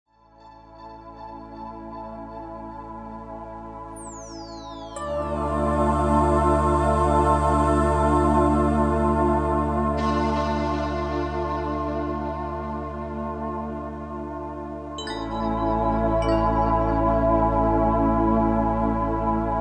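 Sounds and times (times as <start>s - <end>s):
music for Reiki and meditation: 0.2s - 19.6s.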